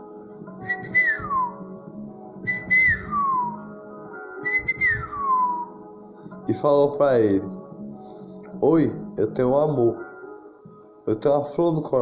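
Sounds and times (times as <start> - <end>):
person whistling birdlike call: 0.6 - 1.6, 2.5 - 3.6, 4.4 - 5.8
speech: 6.5 - 7.6, 8.6 - 10.0, 11.1 - 12.0.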